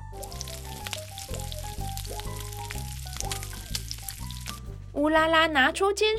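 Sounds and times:
potato chunks deep-frying in hot oil: 0.0 - 4.8
speech: 5.0 - 6.1.

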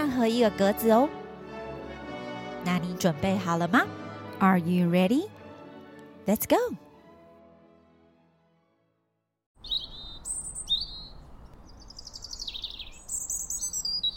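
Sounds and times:
speech: 0.2 - 1.2, 2.6 - 5.4, 6.3 - 6.8
bird chirping: 9.6 - 14.1.

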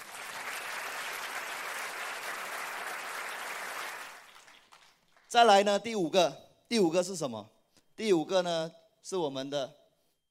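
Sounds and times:
audience applause: 0.0 - 5.2
speech: 5.3 - 9.8.

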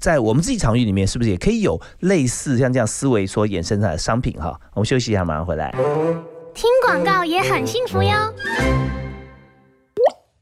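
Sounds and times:
speech: 0.0 - 9.0
single water drop falling: 10.0 - 10.3.

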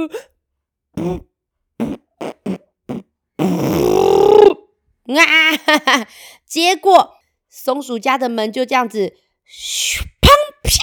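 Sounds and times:
speech: 0.0 - 0.3, 5.1 - 10.8
voice imitating a fart: 1.0 - 4.7.

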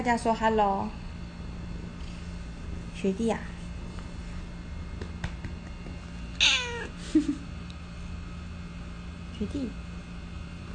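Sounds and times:
speech: 0.0 - 1.0, 3.0 - 3.5, 7.1 - 7.4, 9.4 - 9.8
pet cat meowing: 6.4 - 6.9.

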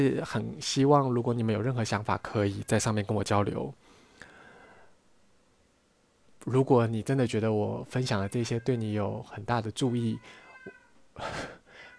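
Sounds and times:
speech: 0.0 - 3.8, 6.4 - 11.6
cat yowling wildly: 9.8 - 11.0.

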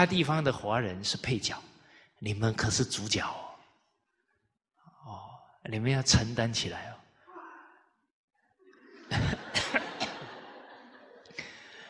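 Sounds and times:
speech: 0.0 - 3.4, 5.1 - 7.0, 9.1 - 9.8
laughter: 8.6 - 11.8
cough: 9.2 - 10.4.

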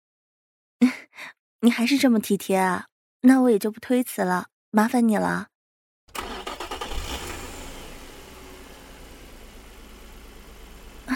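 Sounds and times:
speech: 1.6 - 5.5
sports car engine starting, revving and idling: 6.1 - 11.1.

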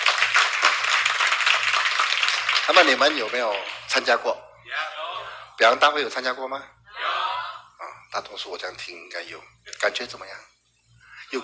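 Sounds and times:
audience applause: 0.0 - 3.9
speech: 2.7 - 4.5, 5.6 - 6.8, 8.1 - 10.5.

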